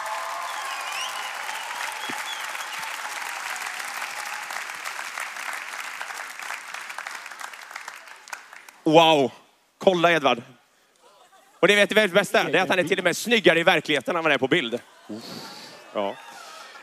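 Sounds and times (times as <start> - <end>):
audience applause: 0.0 - 8.8
speech: 8.9 - 10.6, 11.6 - 16.3.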